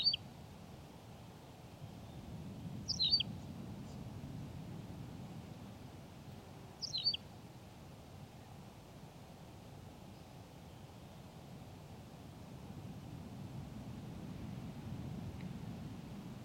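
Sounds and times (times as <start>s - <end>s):
tawny pipit singing: 0.0s - 0.2s, 2.9s - 3.2s, 6.8s - 7.2s
background hiss: 0.0s - 16.4s.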